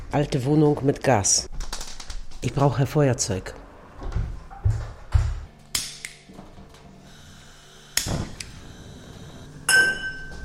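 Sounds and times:
speech: 0:00.1 - 0:01.5, 0:02.4 - 0:03.6
old metal pots clinking as handled: 0:09.7 - 0:10.4.

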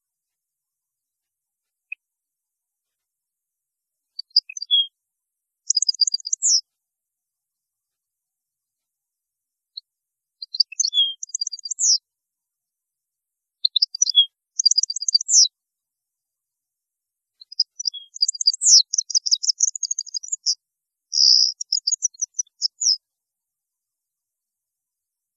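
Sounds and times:
European goldfinch singing: 0:04.2 - 0:04.9, 0:05.7 - 0:06.6, 0:10.5 - 0:12.0, 0:13.6 - 0:15.5, 0:17.4 - 0:23.0.

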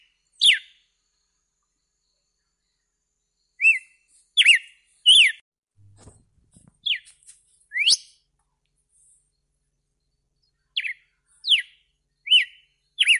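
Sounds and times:
red-cowled cardinal whistled song: 0:00.0 - 0:00.9, 0:03.4 - 0:05.4, 0:06.8 - 0:07.1, 0:07.7 - 0:08.3, 0:09.4 - 0:13.1.

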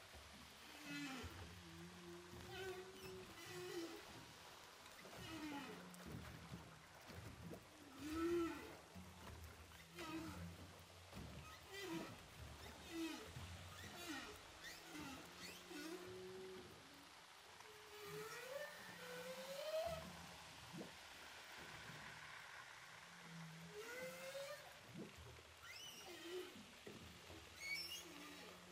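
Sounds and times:
humpback whale song recorded underwater with a hydrophone off Saint-Paul, Réunion: 0:00.1 - 0:28.7.

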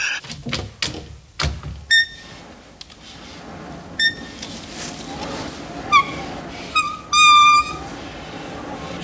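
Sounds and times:
window being carefully opened: 0:00.2 - 0:08.9.

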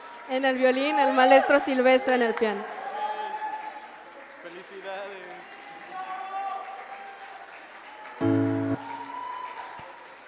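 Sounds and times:
audience applause: 0:00.0 - 0:10.2
speech: 0:00.3 - 0:02.8.

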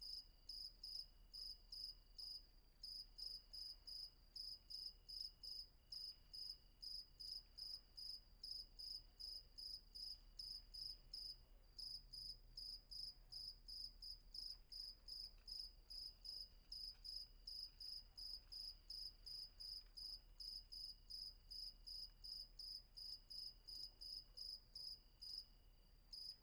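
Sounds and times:
cricket chirping: 0:00.0 - 0:26.4.

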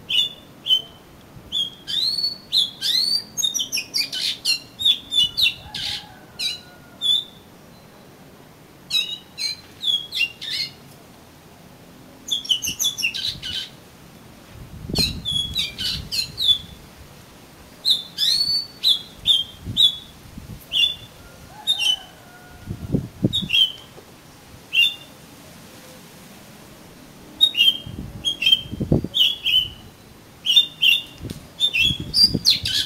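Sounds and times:
Oriental magpie-robin song: 0:00.0 - 0:08.1, 0:08.9 - 0:10.8, 0:12.2 - 0:13.8, 0:14.9 - 0:16.8, 0:17.8 - 0:20.1, 0:20.7 - 0:22.1, 0:23.3 - 0:23.9, 0:24.7 - 0:25.2, 0:27.4 - 0:32.8.

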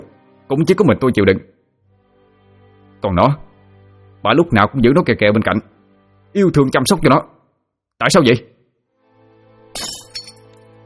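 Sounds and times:
speech: 0:00.5 - 0:01.5, 0:03.0 - 0:03.5, 0:04.2 - 0:05.7, 0:06.3 - 0:07.4, 0:08.0 - 0:08.5
falling shards clinking: 0:09.8 - 0:10.5
flower vase kicked off a table shattering: 0:09.8 - 0:10.6.

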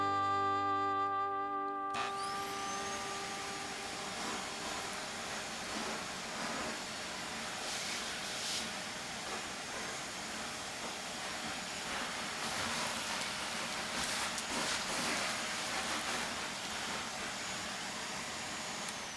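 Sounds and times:
vacuum cleaner running: 0:00.0 - 0:19.1.

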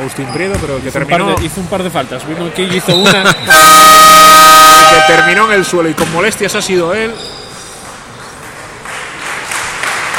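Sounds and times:
speech: 0:00.0 - 0:07.4
Pumarín basketball crowd applauding an injured player at Oviedo Baloncesto game: 0:08.7 - 0:10.1.

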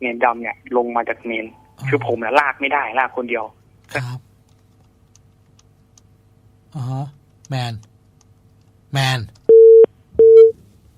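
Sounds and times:
speech: 0:00.0 - 0:04.3, 0:06.7 - 0:07.9, 0:08.9 - 0:09.4
telephone busy tone after a call drops: 0:09.5 - 0:10.5.

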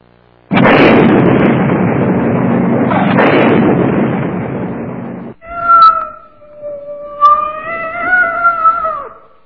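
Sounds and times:
burning sealed cardboard box exploding: 0:00.5 - 0:05.4
cat yowling: 0:05.4 - 0:09.4.

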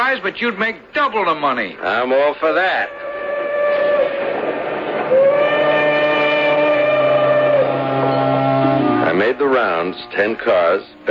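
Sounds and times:
locomotive rumbling as the train pulls into Morris: 0:00.0 - 0:11.1
speech: 0:00.1 - 0:03.1, 0:09.2 - 0:11.1
steam train whistle chord of several harmonic tones: 0:02.8 - 0:10.5.

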